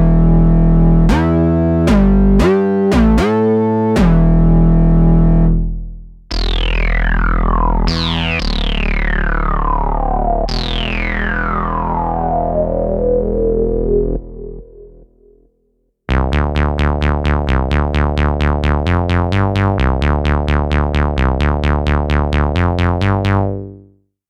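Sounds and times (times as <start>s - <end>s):
synth expander modulated basses: 0.0s - 23.9s.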